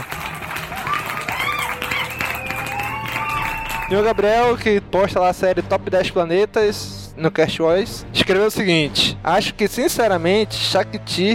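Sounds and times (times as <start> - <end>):
applause: 0.0 - 4.6
speech: 3.9 - 11.3.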